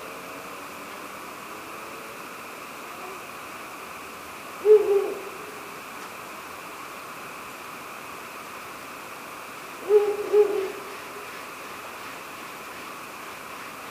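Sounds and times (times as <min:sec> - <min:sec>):
faint background hiss: 0:00.0 - 0:13.9
Ural owl hooting: 0:04.6 - 0:05.6, 0:09.8 - 0:11.3.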